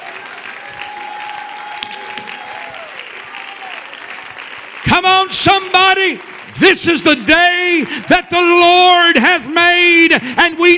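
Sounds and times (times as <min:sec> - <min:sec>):
audience clapping hands: 0:00.0 - 0:09.7
speech: 0:04.9 - 0:10.7.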